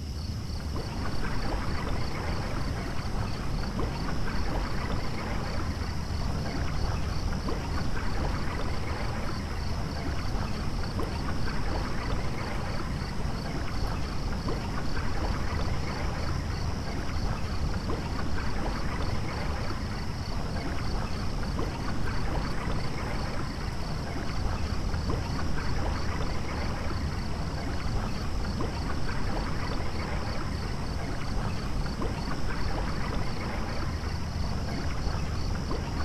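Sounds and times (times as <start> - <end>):
rain and flowing water in a rainforest: 0.1 - 36.0.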